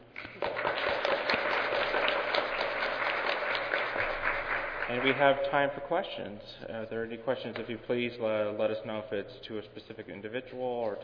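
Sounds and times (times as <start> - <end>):
audience applauding: 0.1 - 6.0
speech: 4.9 - 11.0.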